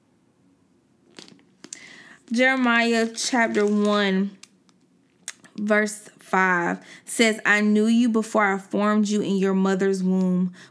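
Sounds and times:
Bible pages turning: 1.1 - 4.8
speech: 2.3 - 4.4, 5.6 - 10.6.

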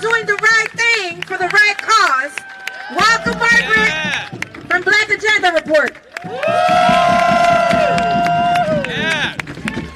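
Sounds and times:
live show audience cheering and applauding a journalist guest: 0.0 - 4.8, 5.7 - 9.9
long high sustained whoops: 6.2 - 8.9.

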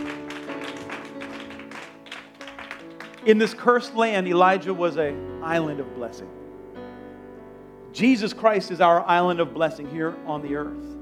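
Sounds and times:
audience clapping: 0.0 - 3.7
sustained keyboard chords: 0.0 - 10.9
speech: 3.2 - 6.4, 8.0 - 10.9.

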